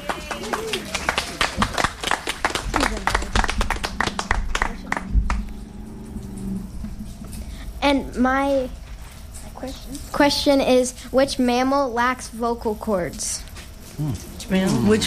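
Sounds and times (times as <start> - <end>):
round of applause: 0.0 - 5.6
speech: 7.9 - 8.8, 9.6 - 15.0.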